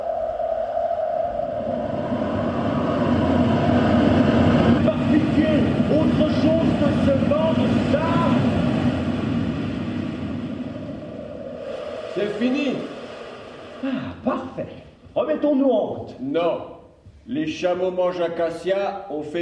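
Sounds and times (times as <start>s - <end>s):
desert wind roaring: 0.0s - 15.0s
speech: 12.2s - 12.9s, 15.5s - 16.7s, 17.3s - 19.4s.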